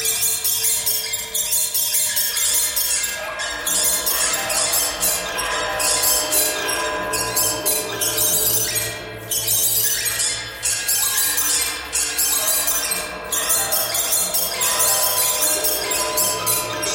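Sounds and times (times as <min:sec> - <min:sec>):
birds singing: 0:00.0 - 0:16.9.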